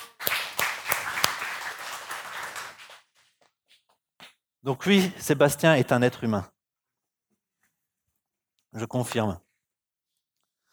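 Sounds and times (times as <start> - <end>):
audience applauding: 0.0 - 3.0
speech: 4.6 - 6.6, 8.7 - 9.4.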